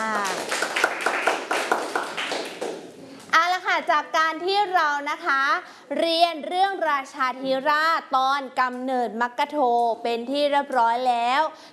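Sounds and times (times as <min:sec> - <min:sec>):
children clapping: 0:00.0 - 0:03.0
speech: 0:03.9 - 0:11.7.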